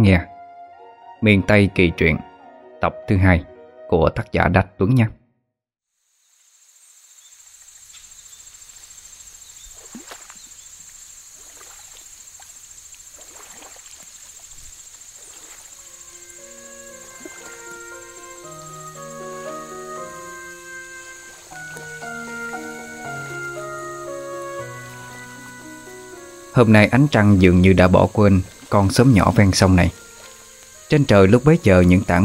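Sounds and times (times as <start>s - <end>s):
speech: 0.0s - 0.3s, 1.2s - 5.2s, 26.6s - 30.0s, 30.9s - 32.2s
soft melodic music: 0.0s - 4.9s, 15.8s - 32.2s
high insect drone: 5.9s - 32.2s
oars creaking and dipping on a river at night: 9.7s - 25.7s, 26.6s - 32.2s.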